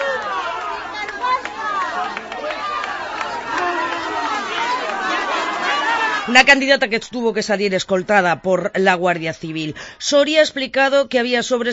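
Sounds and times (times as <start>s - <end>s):
crowd booing: 0.0s - 6.7s
speech: 6.3s - 11.7s.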